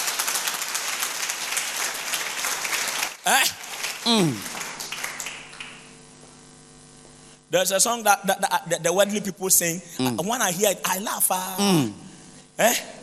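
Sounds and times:
church audience clapping: 0.0 - 6.0
speech: 3.2 - 4.6, 7.5 - 12.0, 12.6 - 13.0.

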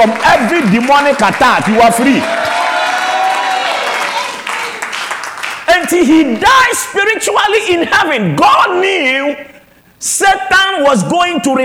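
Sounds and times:
speech: 0.0 - 2.4, 5.8 - 11.6
audience clapping: 0.0 - 6.8
crowd cheering: 0.0 - 6.9.

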